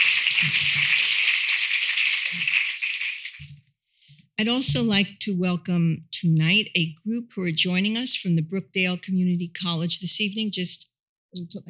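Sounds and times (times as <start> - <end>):
audience applause: 0.0 - 3.4
speech: 0.4 - 0.8, 4.4 - 11.6.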